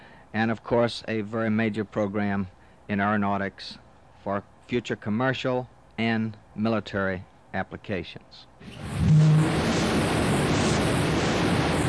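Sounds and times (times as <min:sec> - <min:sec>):
speech: 0:00.3 - 0:09.2
roar of X-15 rocket plane: 0:08.6 - 0:11.8.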